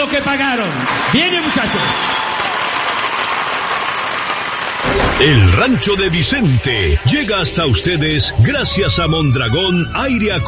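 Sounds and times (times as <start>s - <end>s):
speech: 0.0s - 2.2s, 4.9s - 10.4s
concert audience applause for a live band: 0.3s - 7.8s.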